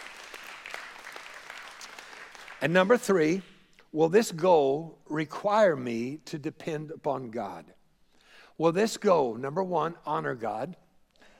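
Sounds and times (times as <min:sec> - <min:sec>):
audience hand clap: 0:00.0 - 0:03.5
speech: 0:02.6 - 0:07.8, 0:08.6 - 0:10.8.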